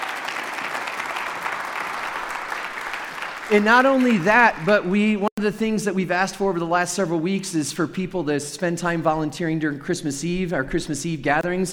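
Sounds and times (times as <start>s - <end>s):
audience applauding: 0.0s - 5.2s
speech: 3.5s - 11.7s.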